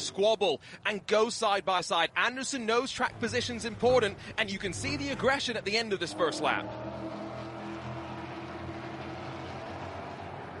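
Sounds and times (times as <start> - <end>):
speech: 0.0 - 7.2
V8 race car engines rumbling: 2.9 - 10.5.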